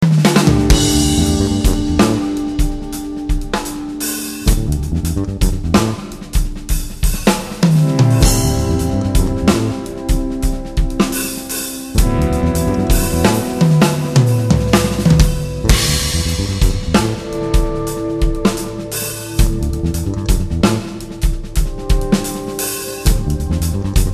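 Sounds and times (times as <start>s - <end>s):
fusion music: 0.0s - 24.1s.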